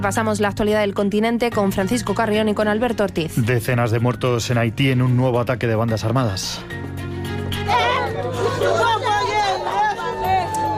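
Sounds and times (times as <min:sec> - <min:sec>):
speech: 0:00.0 - 0:07.1
residents screaming in desperation after attack: 0:07.7 - 0:10.7.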